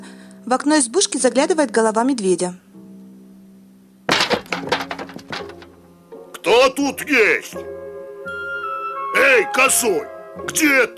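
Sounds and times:
speech: 0.4 - 2.6, 6.5 - 7.8, 9.2 - 10.9
knocking: 4.1 - 5.8.

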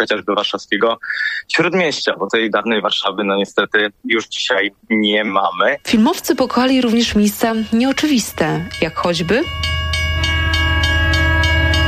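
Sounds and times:
speech: 0.0 - 9.7
train rumble at a railway station: 5.9 - 11.8.

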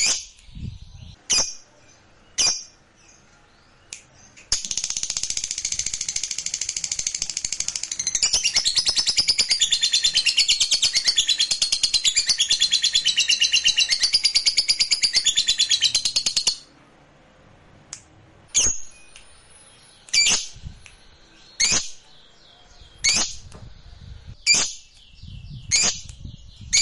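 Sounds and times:
lovebird song: 2.3 - 2.8, 4.5 - 16.7, 18.5 - 20.8, 21.6 - 22.0, 22.8 - 23.5, 24.3 - 26.8.

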